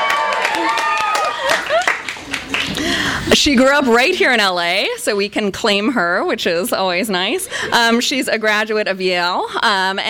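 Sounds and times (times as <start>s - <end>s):
audience applause: 0.0s - 3.1s
speech: 3.4s - 10.0s.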